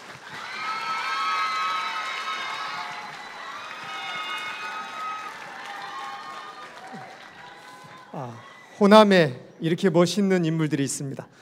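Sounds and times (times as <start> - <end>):
audience applause: 0.0 - 8.7
speech: 8.2 - 11.4.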